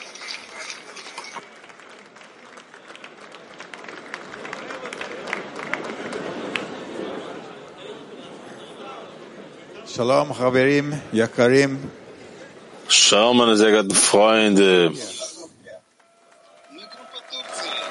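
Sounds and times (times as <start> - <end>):
audience applause: 0.0 - 7.6, 16.0 - 17.8
crowd chatter: 0.0 - 17.8
speech: 10.0 - 12.0, 13.1 - 15.2.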